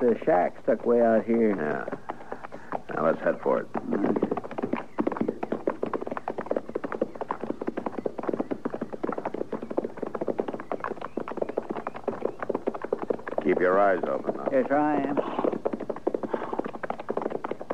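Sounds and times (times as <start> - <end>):
speech: 0.0 - 2.1, 3.0 - 4.4, 13.5 - 15.2
horse hooves clip-clopping at a walking pace near a remote shack: 0.0 - 17.7.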